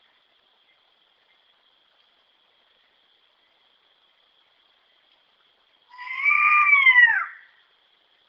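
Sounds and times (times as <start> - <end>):
striped owl calling: 5.9 - 7.6.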